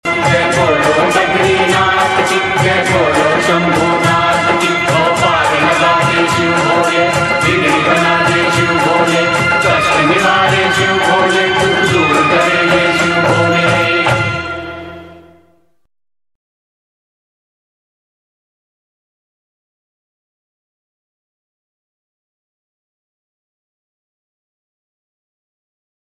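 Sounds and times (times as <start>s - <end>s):
woman singing devotional song: 0.1s - 14.4s.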